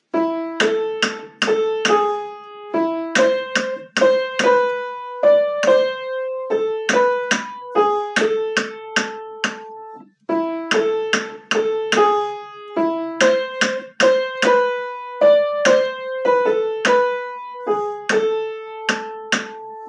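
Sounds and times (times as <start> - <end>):
English melody: 0.0 - 19.8.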